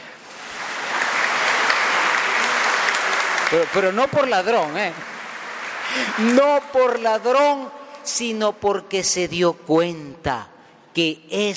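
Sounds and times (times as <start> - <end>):
audience applause: 0.0 - 7.0
speech: 3.5 - 5.1, 5.9 - 11.5.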